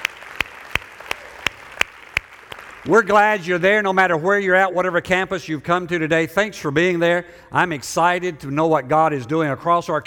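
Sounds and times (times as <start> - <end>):
church service audience clapping: 0.0 - 3.4
speech: 2.8 - 10.0.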